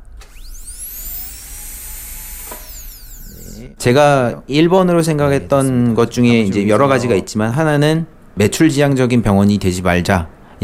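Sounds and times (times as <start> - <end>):
dental instrument whining with water spray: 0.1 - 3.8
speech: 3.7 - 10.6.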